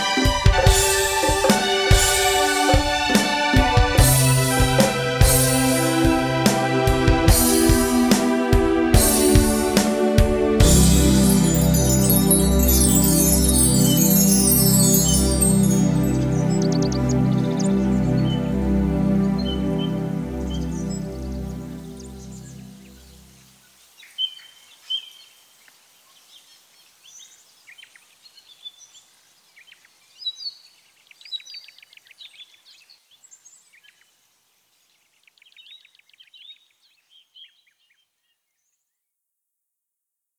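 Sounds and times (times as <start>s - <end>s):
ambient strings: 0.0s - 23.4s.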